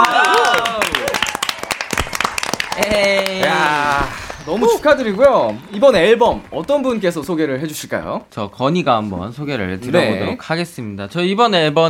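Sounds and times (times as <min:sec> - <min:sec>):
voices whooping and calling out: 0:00.0 - 0:01.6, 0:02.5 - 0:06.2
small group clapping: 0:00.0 - 0:07.7
speech: 0:04.0 - 0:11.8.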